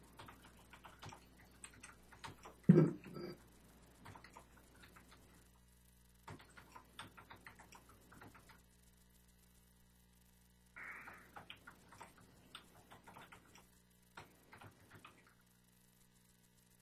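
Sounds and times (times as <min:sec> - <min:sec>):
typing on a computer keyboard: 0:00.1 - 0:03.1, 0:04.0 - 0:05.3, 0:06.3 - 0:08.7, 0:11.1 - 0:15.3.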